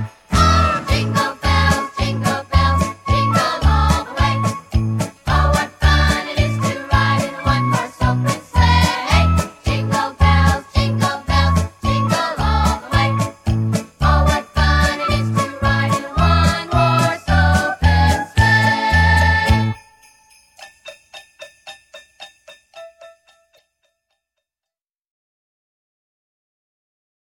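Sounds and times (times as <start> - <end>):
children's choir singing a Christmas song: 0.3 - 13.4, 14.0 - 19.8.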